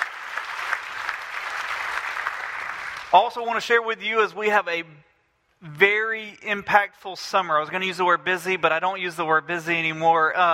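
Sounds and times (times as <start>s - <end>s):
audience applause: 0.0s - 3.2s
speech: 3.1s - 10.5s.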